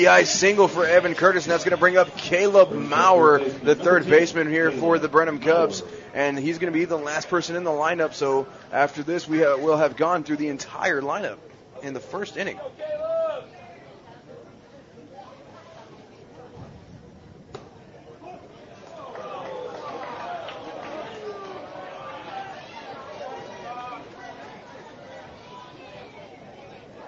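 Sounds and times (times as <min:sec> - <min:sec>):
baseball crowd grumbling over a strike call: 0:00.0 - 0:06.1, 0:18.2 - 0:27.0
speech: 0:00.0 - 0:13.0.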